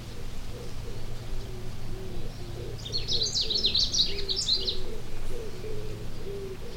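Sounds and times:
long-tailed rosefinch twittering: 0.1 - 6.7.

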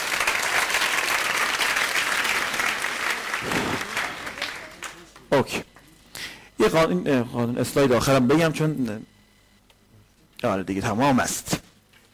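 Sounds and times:
audience applause in a lecture hall after a motivational talk: 0.0 - 5.6
speech: 5.4 - 5.7, 6.6 - 9.1, 10.4 - 11.6.

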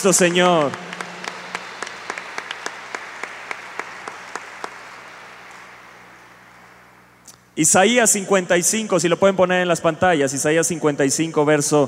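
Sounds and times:
speech: 0.0 - 1.0, 7.6 - 11.8
audience applause: 0.0 - 6.9.

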